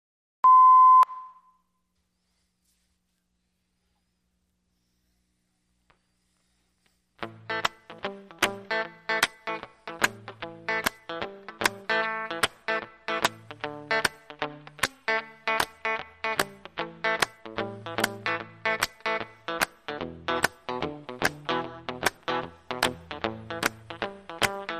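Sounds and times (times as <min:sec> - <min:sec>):
Texas blues music: 0:07.2 - 0:24.7.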